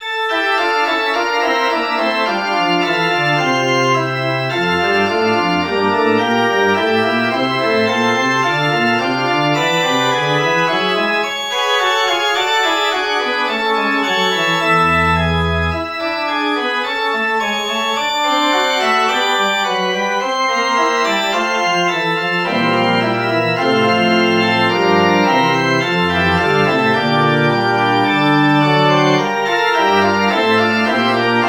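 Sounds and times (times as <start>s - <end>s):
musical prelude: 0.0s - 31.4s.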